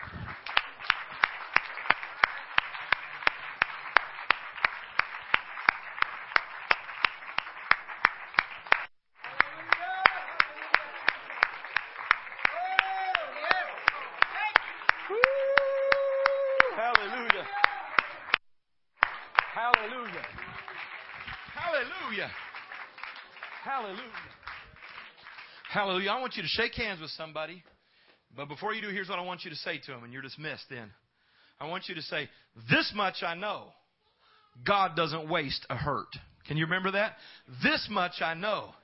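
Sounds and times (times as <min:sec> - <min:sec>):
audience clapping hands: 0:00.0 - 0:18.4, 0:19.0 - 0:26.4
speech: 0:25.8 - 0:27.7, 0:28.4 - 0:31.0, 0:31.6 - 0:33.8, 0:34.6 - 0:38.8.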